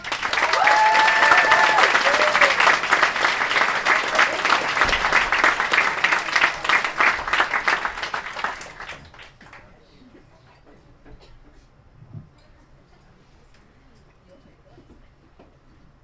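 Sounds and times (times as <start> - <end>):
crowd applauding loudly: 0.0 - 9.6
whoops and cheers: 0.4 - 2.8.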